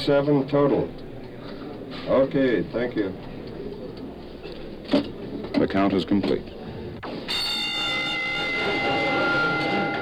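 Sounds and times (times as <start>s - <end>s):
speech: 0.0s - 1.0s, 2.1s - 3.3s, 4.9s - 6.6s
prison all-clear bell ringing: 7.2s - 10.0s.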